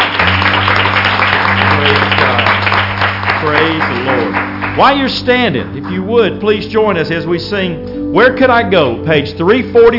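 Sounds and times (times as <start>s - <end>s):
church congregation clapping their hands: 0.0s - 6.6s
low sustained instrumental tones: 0.0s - 9.9s
speech: 4.8s - 9.9s.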